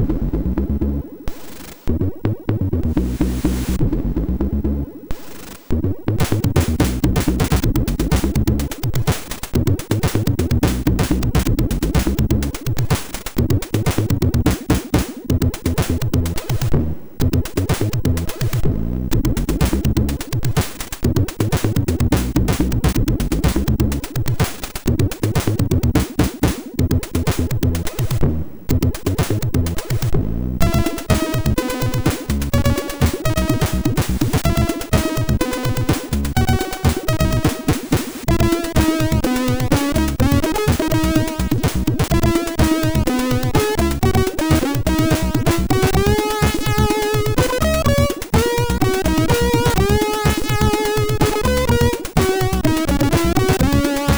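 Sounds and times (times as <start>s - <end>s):
funky SID MOS6581 chip music: 0.0s - 54.1s.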